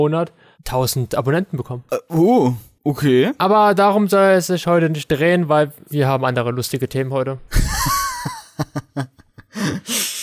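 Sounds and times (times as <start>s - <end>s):
speech: 0.0s - 8.0s, 8.6s - 9.2s
laughter: 7.5s - 10.2s
loud heavy breathing in: 9.5s - 10.2s.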